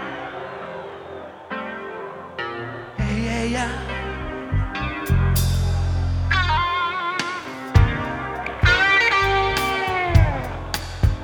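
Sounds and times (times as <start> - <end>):
live blues music: 3.0 - 11.2.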